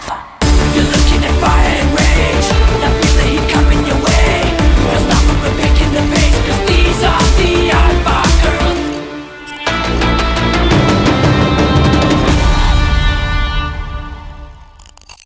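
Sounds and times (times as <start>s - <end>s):
instrumental music: 0.4s - 14.8s.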